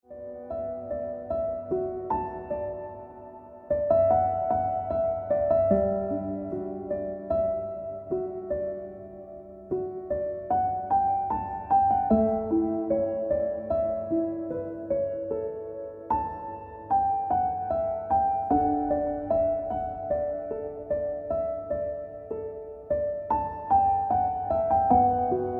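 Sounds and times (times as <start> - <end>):
piano music: 0.0 - 25.5.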